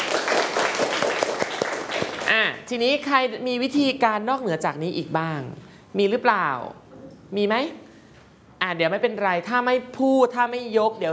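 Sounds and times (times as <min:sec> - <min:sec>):
class clapping for a student: 0:00.0 - 0:02.4
speech: 0:02.3 - 0:07.8, 0:08.6 - 0:11.1.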